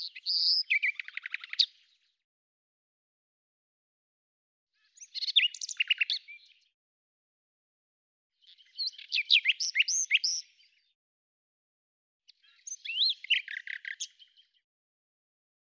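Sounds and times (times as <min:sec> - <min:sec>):
bird song: 0:00.0 - 0:02.2, 0:04.7 - 0:06.8, 0:08.3 - 0:11.0, 0:12.3 - 0:14.7.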